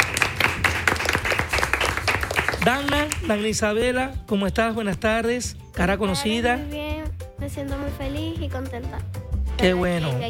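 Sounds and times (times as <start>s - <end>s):
audience applause for a guest on a studio show: 0.0s - 3.4s
speech: 2.6s - 6.8s, 7.5s - 10.2s.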